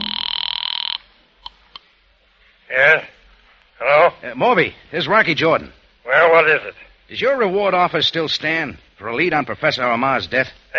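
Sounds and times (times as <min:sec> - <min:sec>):
telephone ringing: 0:00.0 - 0:01.0
speech: 0:04.2 - 0:10.7.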